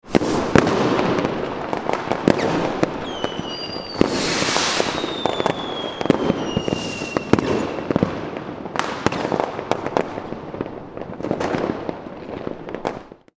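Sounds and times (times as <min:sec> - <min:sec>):
fireworks: 0:00.0 - 0:13.3.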